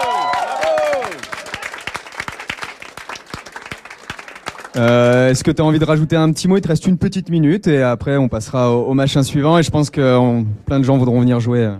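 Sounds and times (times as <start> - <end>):
audience applause: 0.0 - 5.4
speech: 4.8 - 11.7.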